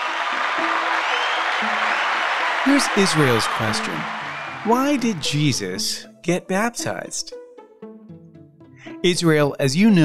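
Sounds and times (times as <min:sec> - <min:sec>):
crowd applauding: 0:00.0 - 0:06.0
speech: 0:00.6 - 0:07.4, 0:09.0 - 0:10.0.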